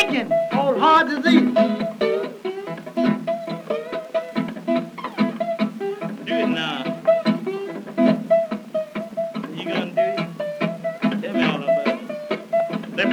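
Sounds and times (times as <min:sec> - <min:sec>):
jazz and rhythm and blues slide guitar: 0:00.0 - 0:13.1.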